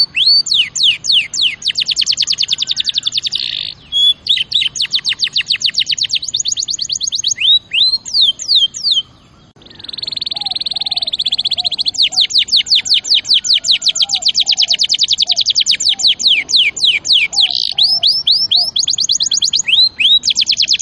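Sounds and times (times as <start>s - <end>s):
canary singing: 0.0s - 20.8s.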